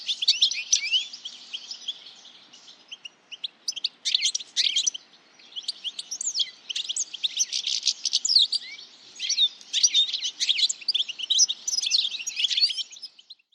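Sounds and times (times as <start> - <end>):
birds chirping and twittering: 0.0 - 13.5.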